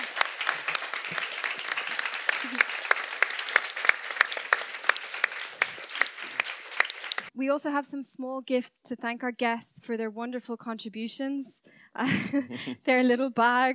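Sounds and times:
audience applause: 0:00.0 - 0:07.3
speech: 0:07.4 - 0:13.7.

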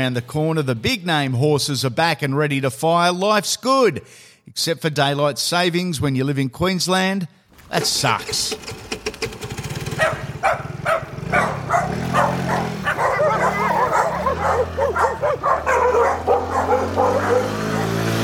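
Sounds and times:
speech: 0:00.0 - 0:09.0
low engine rumble: 0:07.7 - 0:17.9
dogs barking: 0:09.9 - 0:18.2.

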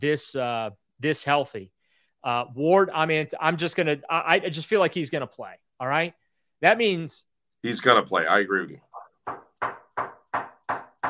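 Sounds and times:
speech: 0:00.0 - 0:10.1
knocking on wood: 0:09.2 - 0:11.0.

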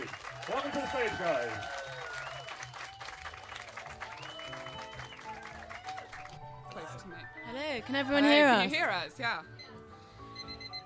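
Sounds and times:
audience applause: 0:00.0 - 0:06.5
speech: 0:00.6 - 0:01.8, 0:07.0 - 0:09.5.

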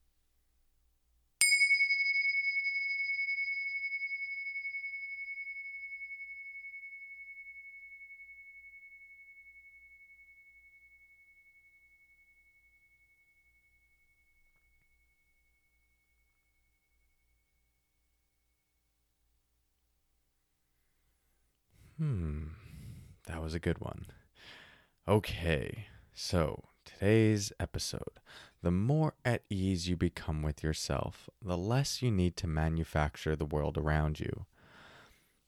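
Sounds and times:
bells ringing: 0:01.4 - 0:06.6
speech: 0:22.0 - 0:34.5.

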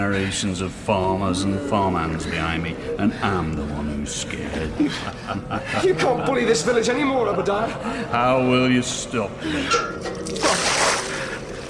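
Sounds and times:
speech: 0:00.0 - 0:10.8
laughter: 0:02.4 - 0:08.5
holy water being splashed: 0:10.0 - 0:11.6.

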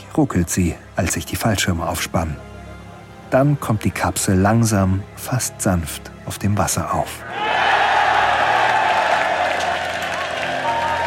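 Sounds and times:
speech: 0:00.2 - 0:02.5, 0:03.3 - 0:07.4
Mission Control room crowd cheering and applauding: 0:07.3 - 0:11.0.

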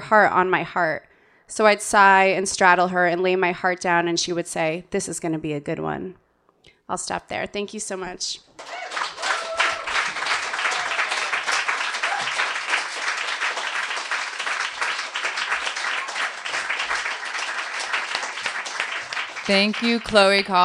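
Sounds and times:
speech: 0:00.1 - 0:06.2, 0:06.9 - 0:08.9, 0:19.5 - 0:20.6
audience applause after a reading: 0:08.6 - 0:20.6.

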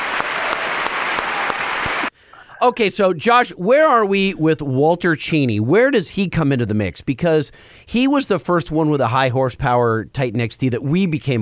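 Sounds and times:
crowd cheering: 0:00.0 - 0:02.1
speech: 0:02.6 - 0:11.4.

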